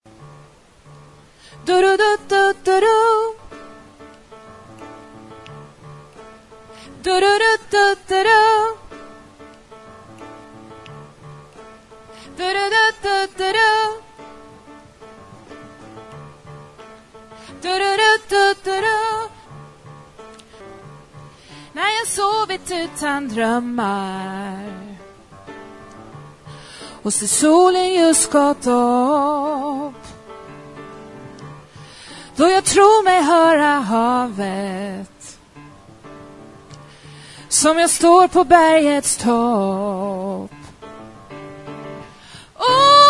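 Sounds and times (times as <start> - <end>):
soprano voice: 0.1 - 4.8, 5.4 - 10.2, 11.7 - 16.4, 17.0 - 19.7, 21.5 - 25.2, 26.8 - 31.6, 32.2 - 35.6, 36.8 - 40.9, 42.0 - 43.0.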